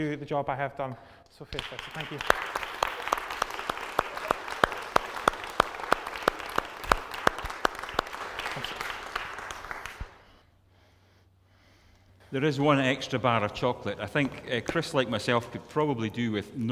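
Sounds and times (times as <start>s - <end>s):
speech: 0.0s - 2.6s, 12.3s - 16.7s
audience applause: 1.6s - 10.2s.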